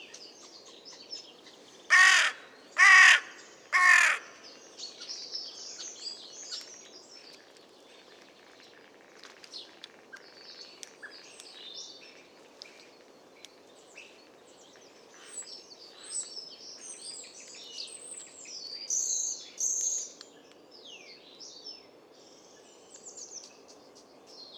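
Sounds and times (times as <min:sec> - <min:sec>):
carrion crow Corvus corone giving coarse caws: 0:01.9 - 0:04.4.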